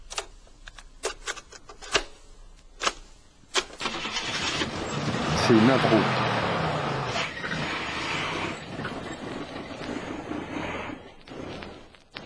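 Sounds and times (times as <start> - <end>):
36-tonne truck engine: 3.8 - 11.6
speech: 5.5 - 6.2.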